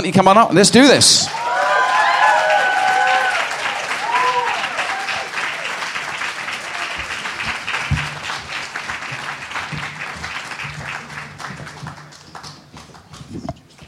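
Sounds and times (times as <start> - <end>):
speech: 0.0 - 1.5
audience cheering and applause: 1.2 - 13.2.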